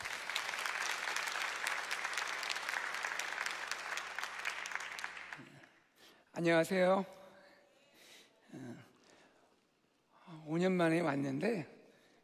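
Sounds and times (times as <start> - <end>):
church congregation applauding in welcome: 0.0 - 5.8
speech: 6.4 - 7.2, 10.6 - 11.8.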